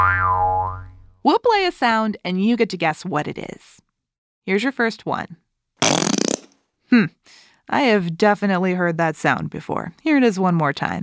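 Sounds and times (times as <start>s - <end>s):
speech: 1.2s - 3.8s, 4.5s - 5.4s, 6.9s - 11.0s
whoopee cushion deflating: 5.8s - 6.5s.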